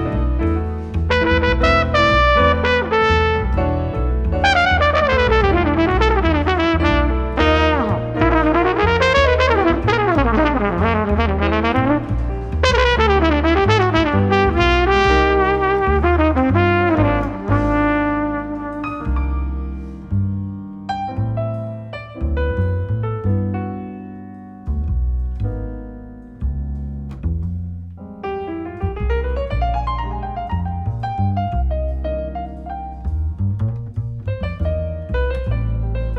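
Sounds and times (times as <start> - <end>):
play-along backing track without drums: 0.0 - 36.1.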